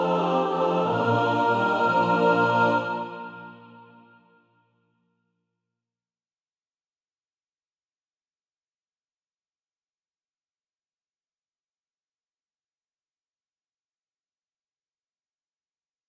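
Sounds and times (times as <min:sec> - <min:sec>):
mixed SATB choir practice music: 0:00.0 - 0:04.4.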